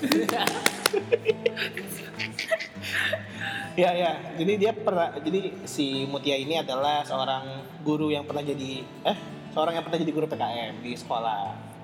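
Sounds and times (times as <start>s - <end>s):
applause sound effect: 0.0s - 1.2s
speech: 0.0s - 1.8s, 3.8s - 11.8s
people chuckling and talking: 0.0s - 3.8s.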